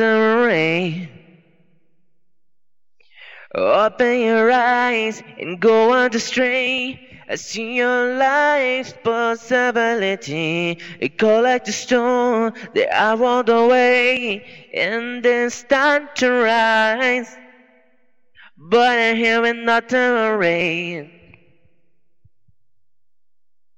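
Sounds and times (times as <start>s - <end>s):
a cappella dance vocals at 130 BPM in B minor: 0.0s - 1.6s, 3.0s - 22.3s.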